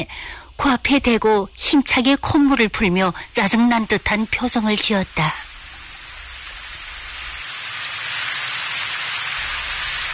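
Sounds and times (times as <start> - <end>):
speech: 0.0 - 5.4
heavy rain falling: 2.3 - 10.1.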